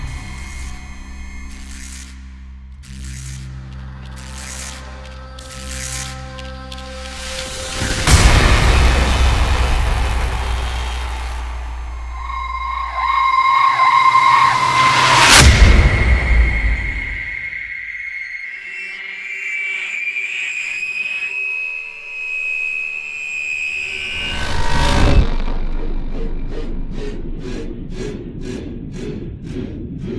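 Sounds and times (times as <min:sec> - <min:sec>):
epic horror sound design: 0:05.6 - 0:20.8, 0:22.4 - 0:30.1.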